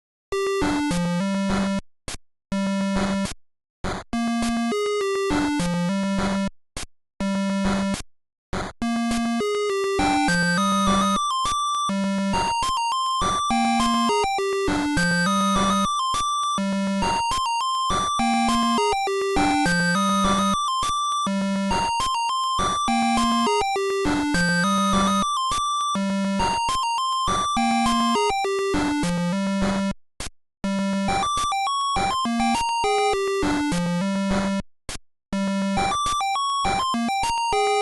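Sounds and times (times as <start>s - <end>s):
Game Boy Color menu music: 0.3s - 1.8s, 2.5s - 3.3s, 4.2s - 6.5s, 7.2s - 8.0s, 8.8s - 29.9s, 30.6s - 34.6s, 35.4s - 37.8s.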